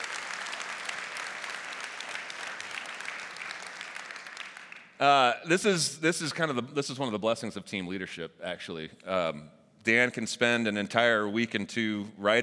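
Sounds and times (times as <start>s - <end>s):
audience applause: 0.0s - 5.0s
speech: 5.0s - 12.4s.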